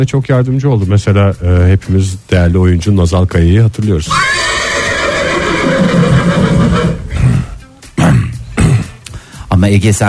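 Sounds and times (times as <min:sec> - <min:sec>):
speech: 0:00.0 - 0:04.4, 0:09.6 - 0:10.0
horse whinnying: 0:04.1 - 0:07.3
horse snorting: 0:04.2 - 0:07.6.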